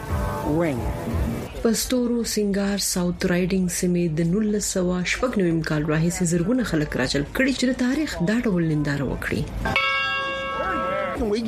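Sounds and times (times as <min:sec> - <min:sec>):
speech: 0:00.5 - 0:09.9, 0:11.2 - 0:11.4
bell ringing at a history festival in South Riding: 0:09.7 - 0:11.4.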